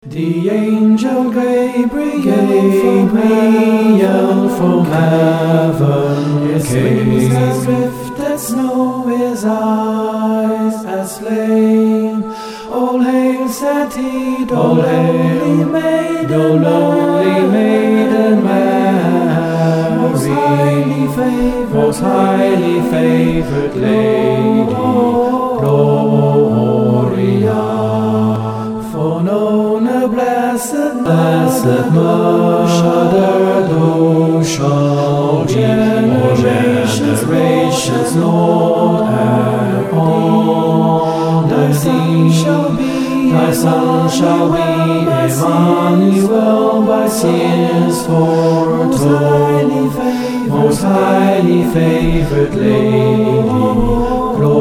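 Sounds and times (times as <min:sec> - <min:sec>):
choir singing: 0:00.0 - 0:54.5.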